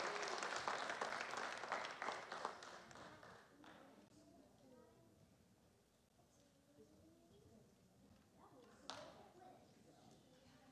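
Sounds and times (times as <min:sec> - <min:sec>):
audience applause: 0:00.0 - 0:03.4.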